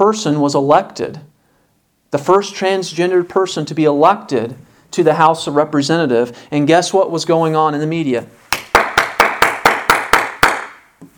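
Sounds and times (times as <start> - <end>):
speech: 0.0 - 1.3, 2.1 - 8.4
clapping: 8.5 - 10.8.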